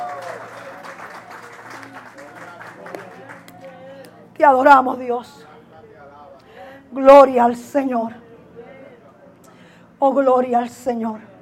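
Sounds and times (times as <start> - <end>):
audience applause: 0.0 - 3.8
speech: 4.4 - 5.5, 6.9 - 8.2, 10.0 - 11.3.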